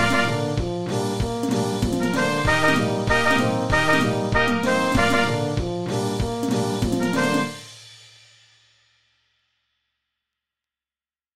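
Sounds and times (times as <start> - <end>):
bugle rock music: 0.0 - 7.8.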